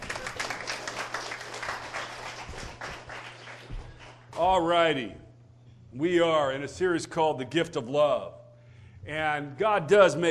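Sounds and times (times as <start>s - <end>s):
applause: 0.0s - 4.4s
speech: 4.4s - 5.2s, 5.9s - 8.4s, 9.0s - 10.3s.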